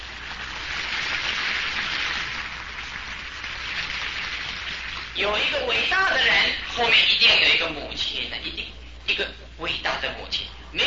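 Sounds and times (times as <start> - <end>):
audience applause: 0.0 - 5.2
speech: 5.2 - 10.8.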